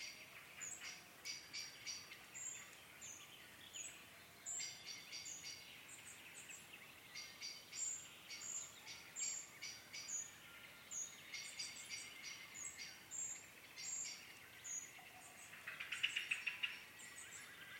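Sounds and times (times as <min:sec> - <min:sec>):
dusk biophony at Cami Binifaldo: 0:00.0 - 0:17.7.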